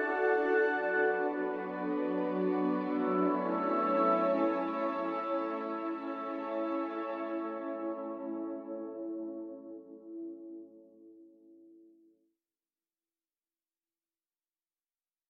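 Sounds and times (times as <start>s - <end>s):
string instruments playing: 0.0s - 9.3s.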